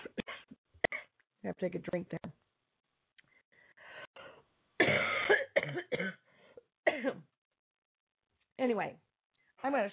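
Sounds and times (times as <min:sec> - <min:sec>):
cough: 0:00.0 - 0:01.1, 0:04.8 - 0:06.3, 0:06.9 - 0:07.3
speech: 0:01.4 - 0:02.3.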